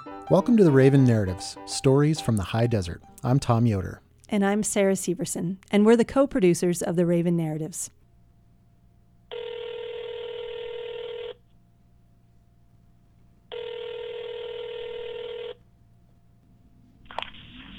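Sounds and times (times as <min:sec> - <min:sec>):
speech: 0:00.3 - 0:08.0
telephone ring tones: 0:09.3 - 0:11.4, 0:13.5 - 0:15.6.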